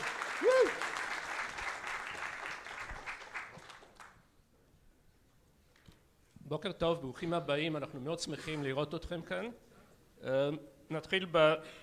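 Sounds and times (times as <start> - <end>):
audience applause: 0.0 - 4.2
whoop: 0.3 - 0.9
speech: 6.5 - 11.8.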